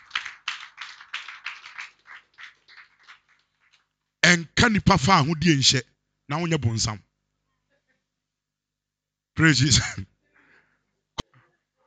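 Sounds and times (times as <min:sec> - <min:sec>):
church congregation clapping in praise to God: 0:00.0 - 0:04.4
speech: 0:04.3 - 0:07.1, 0:09.4 - 0:10.1.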